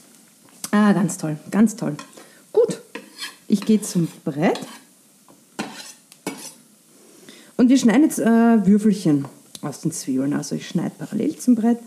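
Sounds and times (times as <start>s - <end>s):
kohlrabi sizzling in a pan: 0.0s - 11.8s
speech: 0.7s - 2.7s, 3.5s - 4.8s, 7.6s - 11.8s
utensil scraping against the pan: 2.9s - 4.9s, 5.6s - 6.6s.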